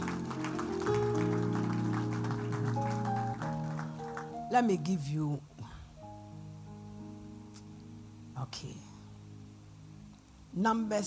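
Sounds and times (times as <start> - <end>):
audience clapping: 0.0 - 5.0
organ or keyboard chords: 0.0 - 11.0
speech: 4.5 - 5.6, 8.5 - 8.9, 10.6 - 11.0.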